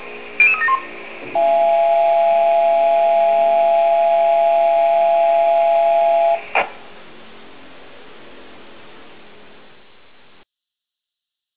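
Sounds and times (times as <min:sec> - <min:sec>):
civil protection alarm: 0:00.4 - 0:06.6.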